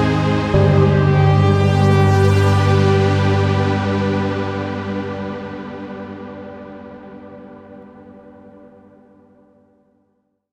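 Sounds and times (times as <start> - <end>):
soundtrack music: 0.0 - 6.6.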